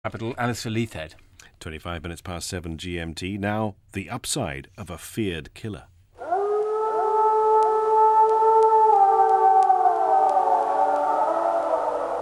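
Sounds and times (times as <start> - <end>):
speech: 0.1 - 5.9
American wolves howling: 6.2 - 12.1.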